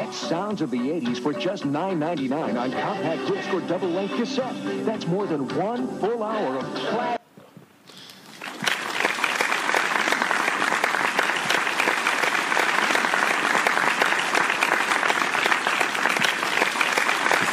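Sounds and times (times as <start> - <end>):
speech: 0.3 - 7.2
applause: 8.1 - 17.5.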